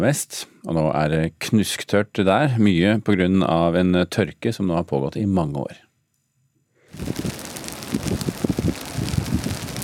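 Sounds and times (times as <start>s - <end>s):
speech: 0.0s - 5.8s
forest fire crackling in dried-out forest in western California: 6.9s - 9.8s.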